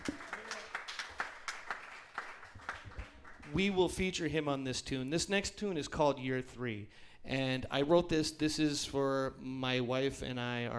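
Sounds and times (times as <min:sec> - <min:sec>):
audience applause: 0:00.0 - 0:03.8
soft noise: 0:00.0 - 0:10.7
speech: 0:03.5 - 0:10.7.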